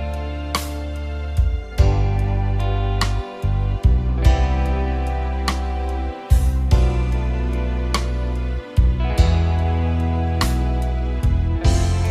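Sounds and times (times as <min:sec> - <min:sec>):
guitar backing track: 0:00.0 - 0:12.1.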